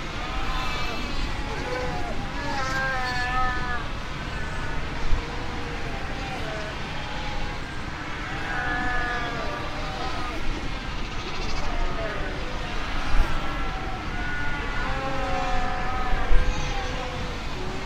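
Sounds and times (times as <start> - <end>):
fur seal colony bleating and moaning calls: 0.0 - 17.8.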